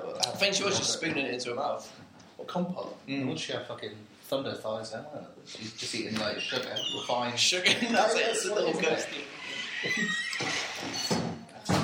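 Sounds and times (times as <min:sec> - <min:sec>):
speech: 0:00.4 - 0:11.2
door creaking shut: 0:06.1 - 0:07.4, 0:09.0 - 0:11.8.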